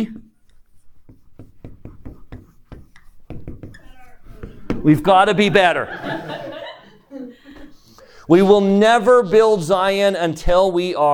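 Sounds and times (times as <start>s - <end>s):
pen or marker strokes writing big bold letters: 0.4s - 5.3s
laughter: 4.4s - 7.8s
speech: 4.8s - 6.4s, 8.3s - 11.1s.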